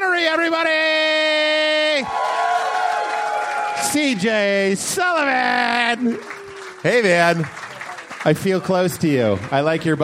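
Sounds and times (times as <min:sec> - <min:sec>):
speech: 0:00.2 - 0:01.1, 0:03.9 - 0:07.6, 0:08.2 - 0:10.0
audience clapping and cheering: 0:01.9 - 0:10.0.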